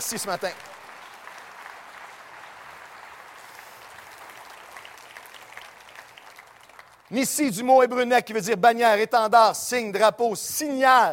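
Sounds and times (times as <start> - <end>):
speech: 0.0 - 0.8, 7.1 - 11.1
audience applauding: 0.0 - 7.2.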